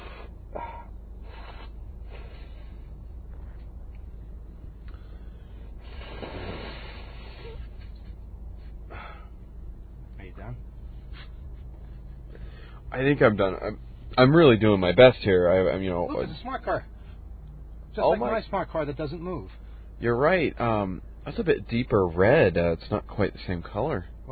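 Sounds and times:
steady low rumble: 0.0 - 18.0
nose blowing: 1.2 - 2.8, 5.8 - 7.9
wet sniffles and snorts: 1.3 - 3.0, 5.8 - 8.8, 11.0 - 12.1
speech: 13.0 - 16.9, 18.0 - 24.3.

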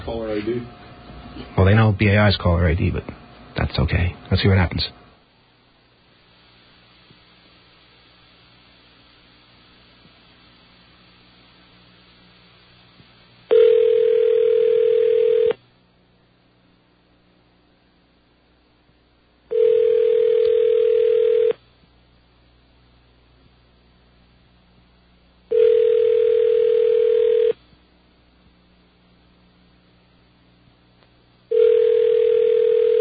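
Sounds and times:
speech: 0.1 - 0.8, 1.4 - 5.0
unanswered phone ringback tones: 13.5 - 15.6, 19.5 - 21.6, 25.5 - 27.6, 31.5 - 32.9.

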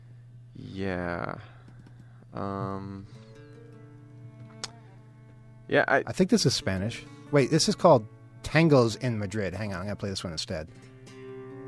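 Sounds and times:
speech: 0.6 - 1.6, 2.3 - 3.2, 5.7 - 10.9
typing on a computer keyboard: 1.7 - 2.1.

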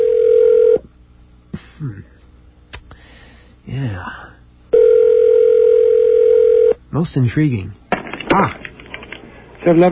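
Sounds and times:
telephone line tone: 0.0 - 0.8, 4.7 - 6.8
speech: 7.0 - 7.8, 9.6 - 9.9.

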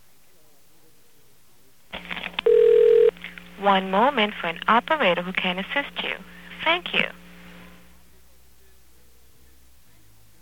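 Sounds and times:
telephone ringing: 2.4 - 3.2
speech: 3.6 - 7.2.

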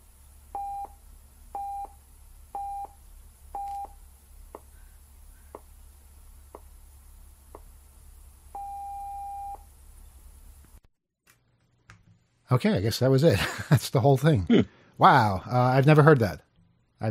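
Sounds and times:
radio official time signal pulse tones: 0.6 - 1.0, 1.6 - 2.0, 2.6 - 3.0, 3.6 - 4.0, 8.6 - 9.6
speech: 12.5 - 16.4.

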